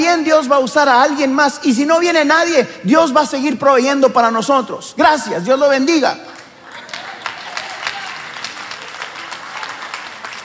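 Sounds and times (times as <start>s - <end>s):
speech: 0.0s - 6.4s
murmuring voices: 6.4s - 10.0s
audience applause: 6.4s - 10.4s.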